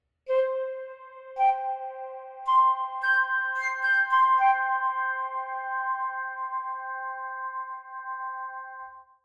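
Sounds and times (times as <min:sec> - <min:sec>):
flute effect: 0:00.3 - 0:07.3.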